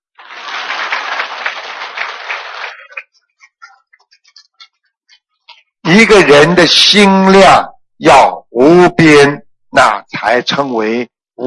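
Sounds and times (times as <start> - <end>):
applause: 0.0 - 3.2
speech: 6.0 - 11.4.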